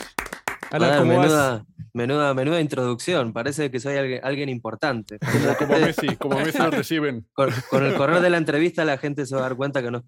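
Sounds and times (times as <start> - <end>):
applause: 0.0 - 1.0
speech: 0.7 - 10.0
laughter: 5.2 - 8.2.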